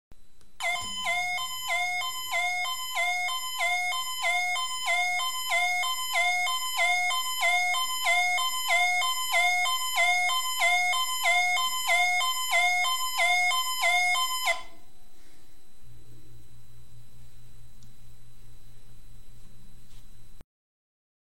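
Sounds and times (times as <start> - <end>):
alarm: 0.6 - 14.9.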